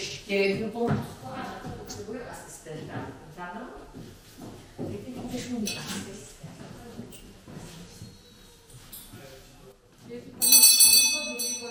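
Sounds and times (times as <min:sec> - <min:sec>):
speech: 0:00.3 - 0:06.8
school bell ringing to end a lesson: 0:10.4 - 0:11.6.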